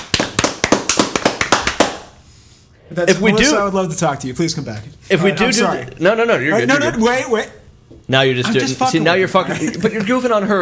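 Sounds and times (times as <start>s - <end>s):
round of applause: 0.0s - 2.2s
speech: 2.9s - 10.6s.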